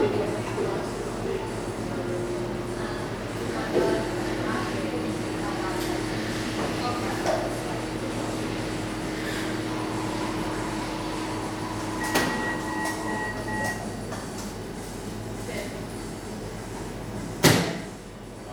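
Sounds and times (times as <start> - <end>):
coffee shop murmur: 0.0 - 18.5.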